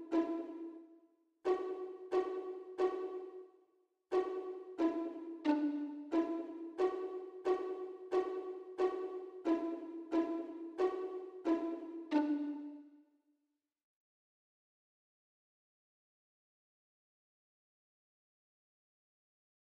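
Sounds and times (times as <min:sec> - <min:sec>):
violin pizzicato: 0:00.0 - 0:00.8, 0:01.5 - 0:03.5, 0:04.1 - 0:12.8.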